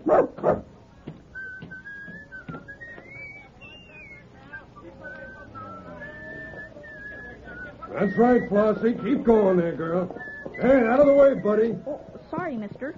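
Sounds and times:
dog barking: 0:00.0 - 0:00.7
speech: 0:08.0 - 0:12.9.

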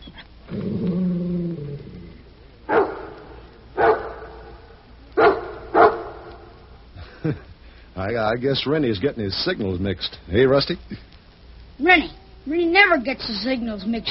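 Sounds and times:
dog growling: 0:00.4 - 0:03.1
dog barking: 0:02.7 - 0:03.2, 0:03.8 - 0:04.5, 0:05.2 - 0:06.3
speech: 0:07.2 - 0:11.1, 0:11.8 - 0:14.0.

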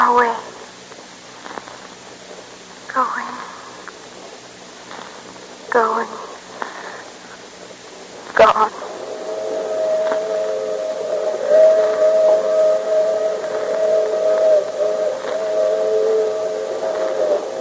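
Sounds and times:
speech: 0:00.1 - 0:00.4
low rumbling background: 0:04.9 - 0:17.5
departing train whistle: 0:08.4 - 0:17.5.

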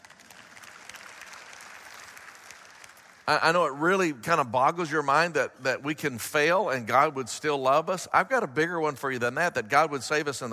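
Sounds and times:
audience clapping: 0:00.0 - 0:03.8
speech: 0:03.3 - 0:10.5.

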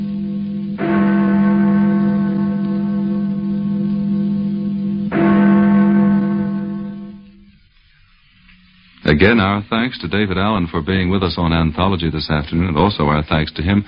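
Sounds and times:
deep church bell tolling: 0:00.0 - 0:07.4
speech: 0:09.1 - 0:13.8.

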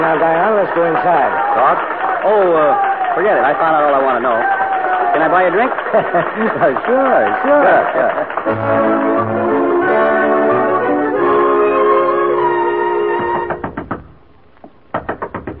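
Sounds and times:
speech: 0:00.0 - 0:10.1
laughter: 0:04.9 - 0:09.1
sustained tonal music: 0:08.4 - 0:13.8
knocking on a door: 0:13.2 - 0:15.5.

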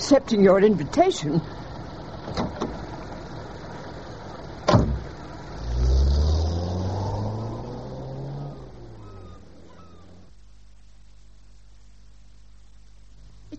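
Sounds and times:
speech: 0:00.1 - 0:01.6
car engine driving off: 0:01.5 - 0:10.4.

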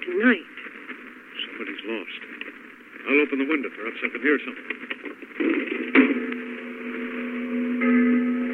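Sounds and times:
speech: 0:00.2 - 0:00.5, 0:03.3 - 0:05.0
bell ringing: 0:06.1 - 0:08.5.

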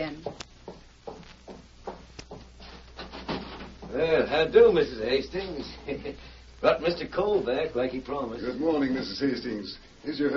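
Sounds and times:
knocking on a wooden door: 0:00.0 - 0:02.6
soft rubbing and shuffling: 0:01.2 - 0:04.0
speech: 0:03.9 - 0:10.3.

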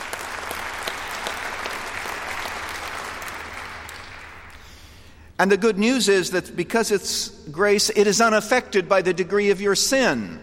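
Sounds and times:
audience applause: 0:00.0 - 0:04.9
speech: 0:05.4 - 0:10.4.

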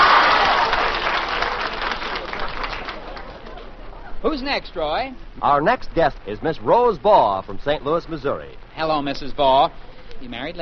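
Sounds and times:
studio audience applause as guests leave a live show: 0:00.0 - 0:03.7
speech: 0:04.3 - 0:10.5.

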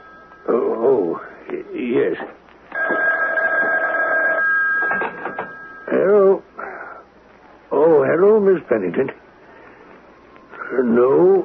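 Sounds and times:
telephone ringing: 0:00.0 - 0:01.2, 0:02.7 - 0:06.1
speech: 0:00.5 - 0:03.2, 0:08.2 - 0:09.2, 0:10.7 - 0:11.4.

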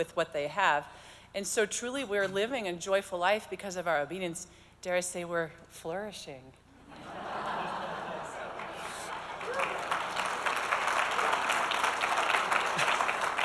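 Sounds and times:
speech: 0:00.0 - 0:07.6
laughter: 0:06.8 - 0:09.8
audience applause: 0:07.7 - 0:13.4.

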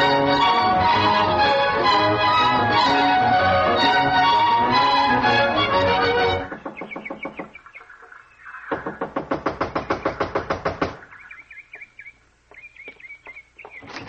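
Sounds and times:
birds chirping and tweeting: 0:00.0 - 0:14.0
loud rapid knocking on a door: 0:06.5 - 0:07.6, 0:08.7 - 0:11.0.

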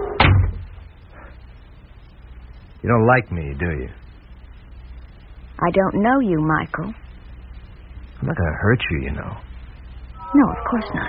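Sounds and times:
door being pushed shut: 0:00.0 - 0:00.8
speech: 0:02.8 - 0:04.0, 0:05.6 - 0:07.0, 0:08.2 - 0:09.5, 0:10.3 - 0:11.0.

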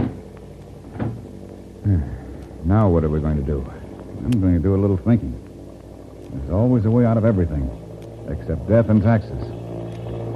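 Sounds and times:
door being closed and locked: 0:00.0 - 0:00.2, 0:00.9 - 0:01.2
speech: 0:02.7 - 0:05.4, 0:06.3 - 0:09.6.

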